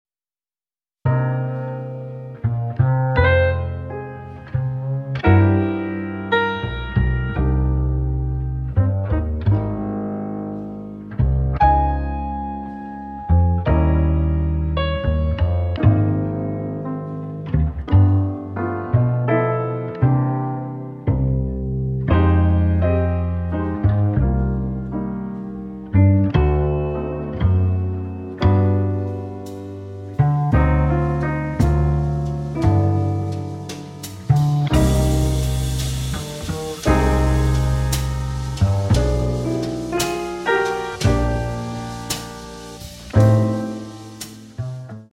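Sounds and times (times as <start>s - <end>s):
jazz ensemble playing in C minor: 1.1s - 45.1s.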